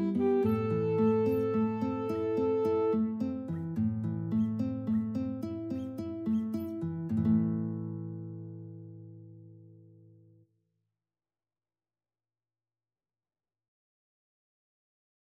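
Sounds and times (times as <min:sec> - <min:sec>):
alto sax in an alto sax and guitar duet: 0:00.0 - 0:03.1
guitar in an alto sax and guitar duet: 0:00.0 - 0:10.4.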